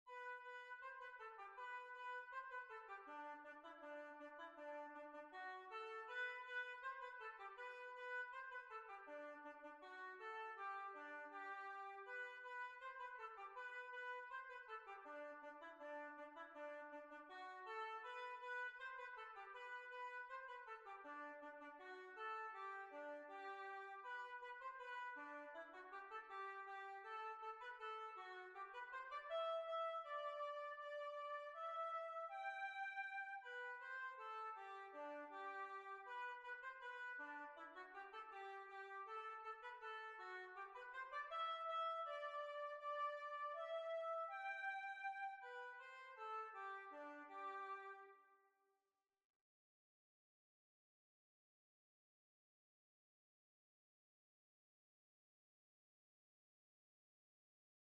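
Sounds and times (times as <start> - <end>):
hornpipe tune: 0.1 - 48.2.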